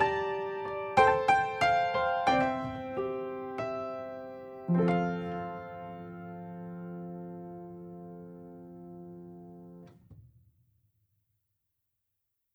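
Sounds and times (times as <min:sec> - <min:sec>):
piano instrumental: 0:00.0 - 0:10.0.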